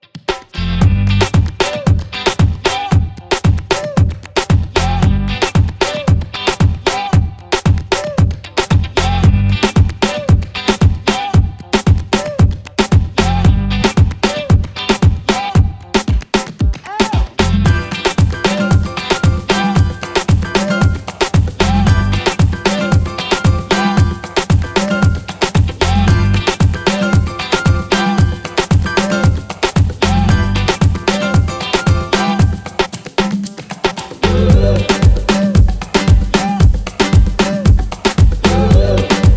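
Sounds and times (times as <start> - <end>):
Latin music: 0.0 - 39.3.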